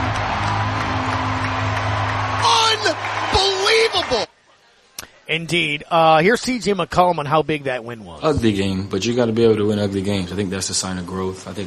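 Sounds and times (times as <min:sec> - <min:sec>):
arena crowd erupting in cheers: 0:00.0 - 0:04.4
speech: 0:02.9 - 0:04.3, 0:05.0 - 0:11.6.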